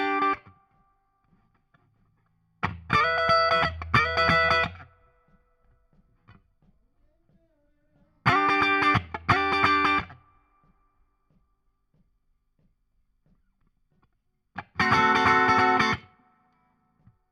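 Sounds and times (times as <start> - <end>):
guitar solo: 0.0 - 0.6, 2.6 - 4.9, 8.2 - 10.2, 14.6 - 16.2.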